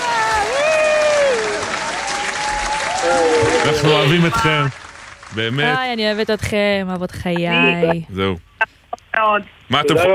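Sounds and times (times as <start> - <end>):
high-pitched whoop or whistle: 0.0 - 3.7
audience applause: 0.0 - 6.4
speech: 3.6 - 10.1.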